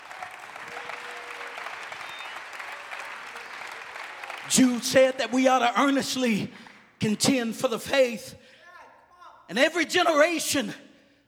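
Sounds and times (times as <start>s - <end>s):
audience clapping hands: 0.0s - 6.9s
speech: 4.5s - 8.4s, 9.5s - 10.8s.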